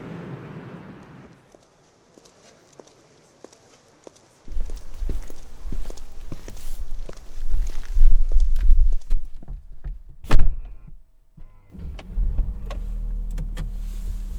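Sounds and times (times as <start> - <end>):
limousine ambience: 4.5 - 14.3.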